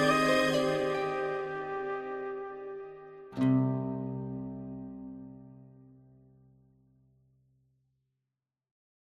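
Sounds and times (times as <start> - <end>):
atmosphere: 0.0 - 6.1.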